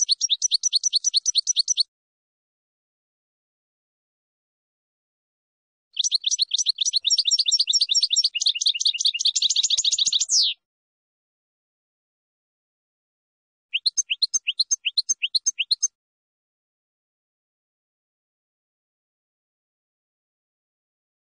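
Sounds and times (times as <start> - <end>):
finch song: 0.0 - 1.9, 6.0 - 10.6, 13.7 - 16.0.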